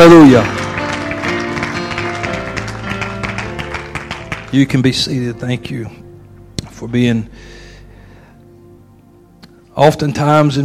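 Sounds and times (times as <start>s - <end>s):
speech: 0.0s - 0.6s, 4.5s - 6.0s, 6.8s - 7.6s, 9.8s - 10.6s
audience clapping hands in praise: 0.0s - 5.2s.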